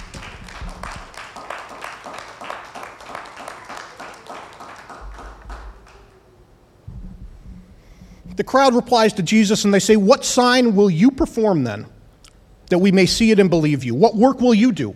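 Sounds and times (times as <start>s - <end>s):
audience hand clapping: 0.0s - 6.2s
speech: 8.4s - 12.0s, 12.7s - 14.9s.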